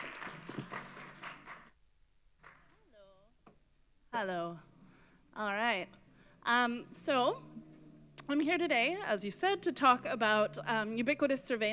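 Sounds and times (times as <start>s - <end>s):
applause: 0.0s - 1.8s, 2.4s - 2.8s
speech: 4.2s - 4.7s, 5.4s - 7.6s, 8.3s - 11.7s.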